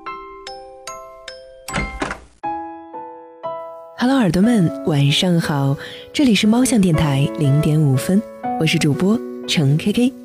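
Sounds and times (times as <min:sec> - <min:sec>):
door opening sound effect with chime notes: 0:01.7 - 0:02.3
speech: 0:04.0 - 0:10.2.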